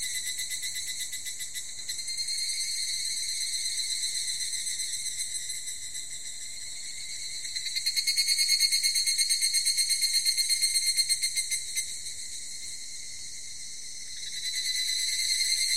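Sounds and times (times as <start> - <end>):
higurashi cicada calling: 0.0 - 15.7.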